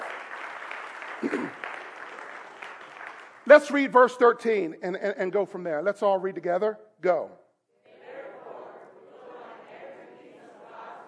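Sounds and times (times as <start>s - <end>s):
faint applause from a church congregation: 0.0s - 3.6s
speech: 1.2s - 1.7s, 3.4s - 7.4s.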